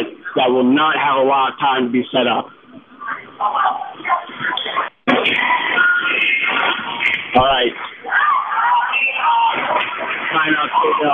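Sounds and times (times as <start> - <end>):
speech: 0.0 - 2.6, 10.7 - 11.1
basketball crowd cheering: 3.4 - 11.1.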